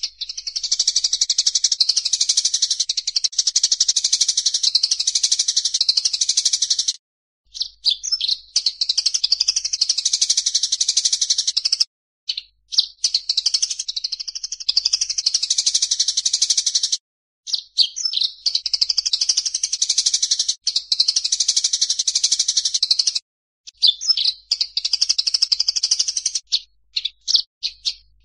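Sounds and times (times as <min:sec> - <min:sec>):
Oriental magpie-robin singing: 0:00.0 - 0:28.2.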